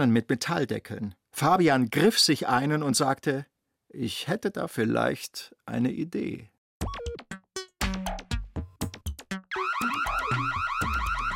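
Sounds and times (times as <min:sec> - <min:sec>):
speech: 0:00.0 - 0:07.0
electronic alarm siren: 0:09.5 - 0:11.3.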